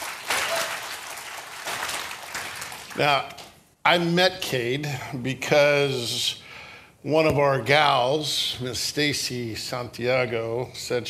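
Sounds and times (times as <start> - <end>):
church congregation applauding: 0.0 - 3.5
speech: 3.0 - 6.4, 7.0 - 11.0.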